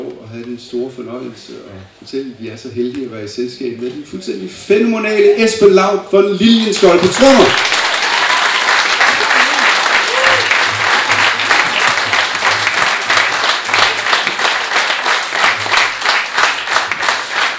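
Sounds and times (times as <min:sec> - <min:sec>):
speech: 0:00.0 - 0:07.8
audience applauding for the drummer: 0:06.6 - 0:17.5
brief cheers: 0:08.0 - 0:10.7.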